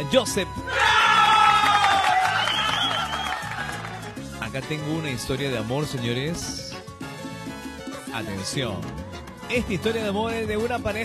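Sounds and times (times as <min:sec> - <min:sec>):
speech: 0:00.0 - 0:01.0, 0:04.5 - 0:06.6, 0:08.1 - 0:11.0
cheering: 0:00.7 - 0:04.2
applause: 0:01.1 - 0:04.3.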